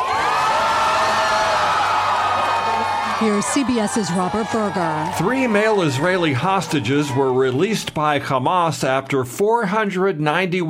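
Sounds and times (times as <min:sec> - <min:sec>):
large crowd cheering at hostage release celebration in Tel Aviv: 0:00.0 - 0:07.9
speech: 0:03.2 - 0:10.6.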